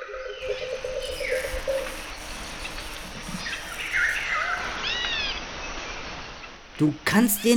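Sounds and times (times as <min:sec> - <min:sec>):
birds calling and whistling in Brazilian rainforest: 0:00.0 - 0:05.4
insect buzzing in Brazilian rainforest: 0:00.0 - 0:06.8
speech: 0:06.8 - 0:07.5.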